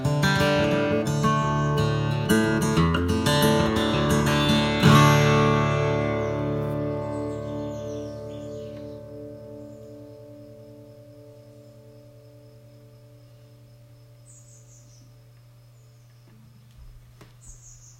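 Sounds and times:
Gibson J 100 sunburst brown acoustic guitar: 0.0s - 14.2s.

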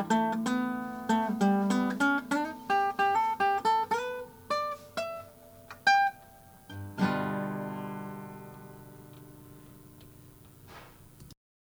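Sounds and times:
Martin 00 18c natural guitar: 0.0s - 11.4s.

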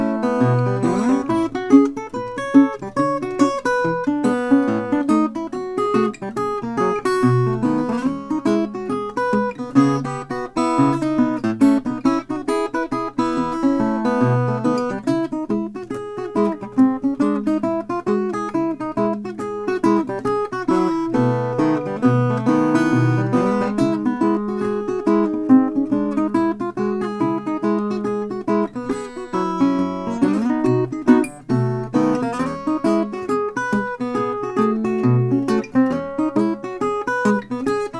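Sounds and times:
Gretsch Hawaiian Deluxe sunburst lap steel guitar: 0.0s - 37.9s.

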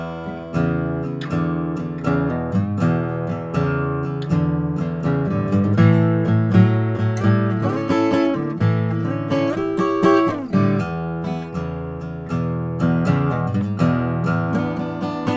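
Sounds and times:
acoustic guitar with mahogany body: 0.0s - 15.3s.

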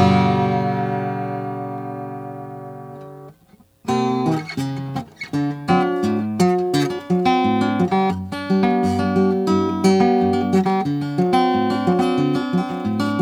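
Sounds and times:
Oscar Schmidt Stella guitar playing: 0.0s - 13.2s.

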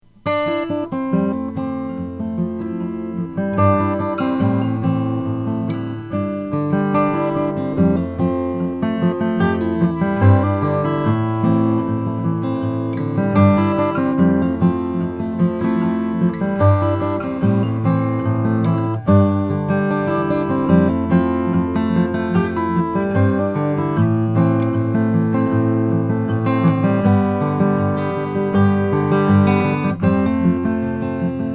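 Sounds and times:
Breedlove C15e acoustic guitar: 0.0s - 31.5s.

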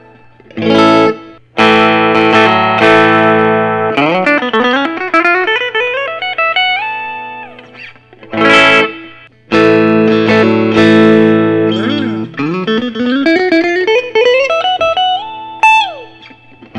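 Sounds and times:
quilt top two-tone sunburst electric guitar playing: 0.0s - 16.7s.

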